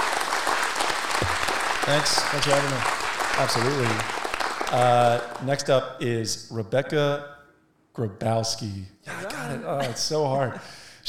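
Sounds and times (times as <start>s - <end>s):
audience applause: 0.0s - 5.7s
speech: 1.2s - 7.4s, 8.0s - 11.0s.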